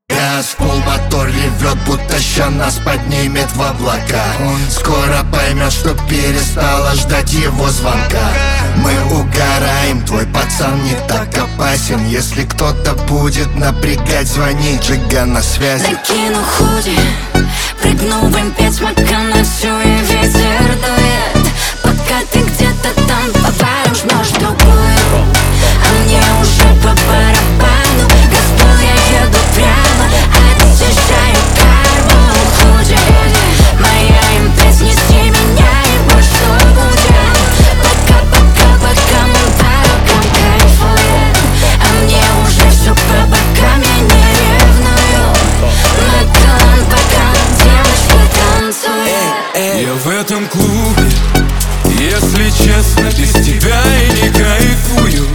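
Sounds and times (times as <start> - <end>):
Brazilian phonk music: 0.0 - 55.3.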